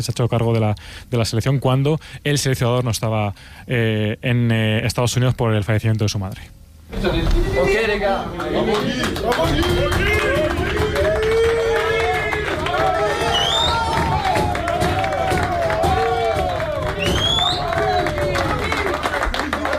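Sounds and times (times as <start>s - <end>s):
speech: 0.0s - 10.1s
footballers applauding in the dressing room: 8.3s - 19.7s.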